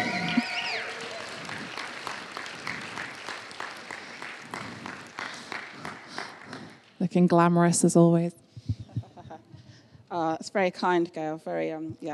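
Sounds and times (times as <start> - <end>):
audience clapping to welcome a speaker to the stage: 0.0 - 7.0
speech: 7.1 - 8.4, 10.2 - 12.1.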